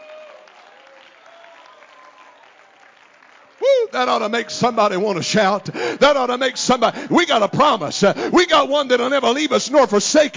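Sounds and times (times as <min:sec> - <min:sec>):
audience clapping hands: 0:00.0 - 0:06.9
speech: 0:03.9 - 0:10.3.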